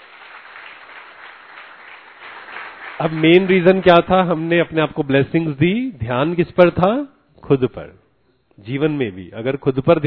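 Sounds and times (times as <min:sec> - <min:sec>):
group clapping at a motivational session: 0:00.0 - 0:04.8
speech: 0:03.0 - 0:08.0, 0:08.6 - 0:10.0.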